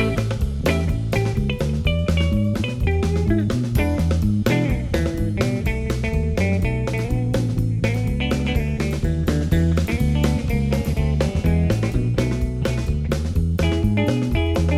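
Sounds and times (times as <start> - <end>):
blues drumming: 0.0 - 14.7.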